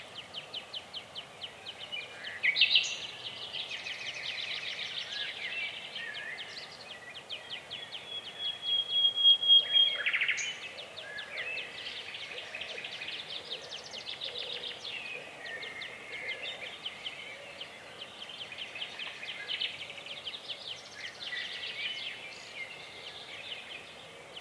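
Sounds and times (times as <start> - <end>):
natural biophony soundscape: 0.0 - 24.4.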